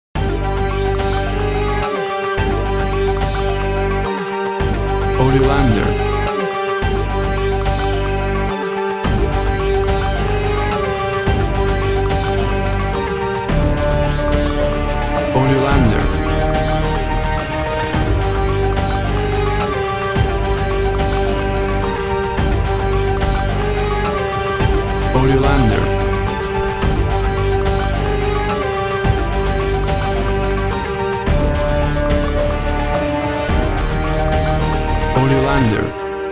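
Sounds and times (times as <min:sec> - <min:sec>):
uptempo hybrid action music: 0:00.2 - 0:36.2.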